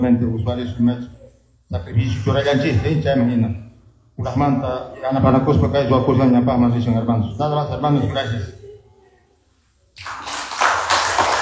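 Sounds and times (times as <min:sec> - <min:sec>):
speech: 0:00.0 - 0:08.6
applause: 0:10.0 - 0:11.4.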